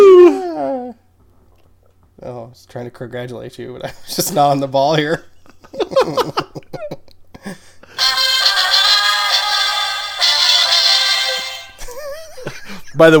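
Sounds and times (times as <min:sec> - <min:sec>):
speech: 0:02.5 - 0:07.6, 0:13.0 - 0:13.1
party noisemaker honking: 0:08.0 - 0:11.8.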